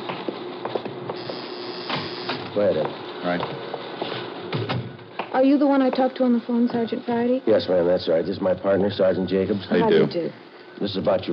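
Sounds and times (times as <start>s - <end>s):
electric door buzzer: 1.1s - 2.6s
speech: 2.6s - 3.8s, 5.4s - 11.3s.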